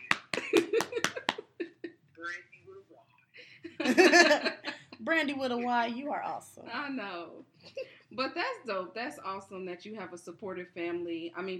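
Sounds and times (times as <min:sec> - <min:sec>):
clapping: 0:00.0 - 0:01.4
speech: 0:05.1 - 0:11.5.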